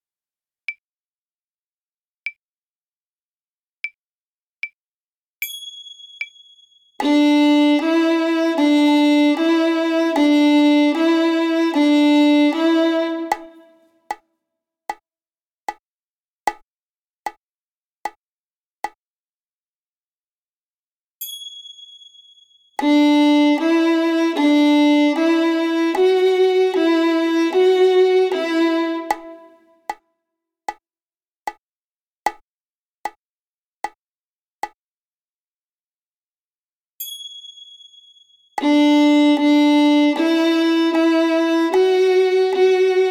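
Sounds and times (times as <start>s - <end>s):
violin played on the D string: 7.0s - 13.8s, 22.8s - 29.6s, 38.6s - 43.0s.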